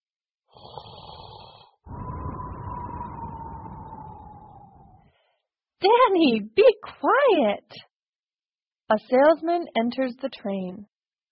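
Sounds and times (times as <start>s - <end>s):
loud snoring: 0.5s - 5.0s
speech: 5.8s - 7.9s, 8.9s - 10.9s.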